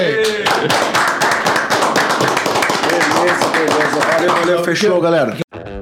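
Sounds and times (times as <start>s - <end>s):
speech: 0.0s - 0.9s, 4.7s - 5.4s
round of applause: 0.1s - 4.7s.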